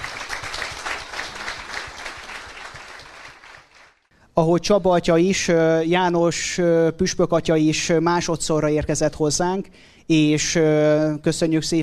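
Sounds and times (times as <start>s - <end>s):
audience applause welcoming a guest speaker: 0.0s - 4.1s
speech: 4.4s - 11.8s.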